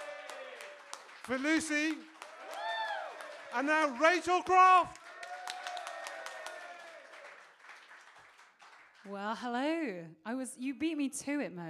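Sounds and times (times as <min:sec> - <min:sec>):
audience applause: 0:00.0 - 0:09.1
speech: 0:01.3 - 0:02.2, 0:03.5 - 0:05.0, 0:09.1 - 0:11.6.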